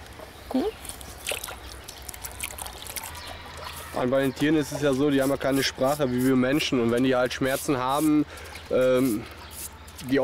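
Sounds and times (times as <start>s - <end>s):
speech: 0.5s - 0.9s, 4.0s - 9.4s, 10.0s - 10.2s
small splashes: 0.8s - 3.7s
water trickling while cleaning an animal's sore foot: 0.8s - 3.8s.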